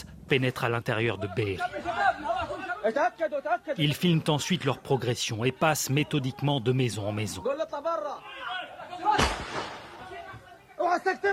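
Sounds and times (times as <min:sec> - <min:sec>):
men shouting and talking: 0:00.0 - 0:11.3
speech: 0:00.3 - 0:09.7, 0:10.8 - 0:11.3
assault rifle bursts of gunfire: 0:09.2 - 0:10.1.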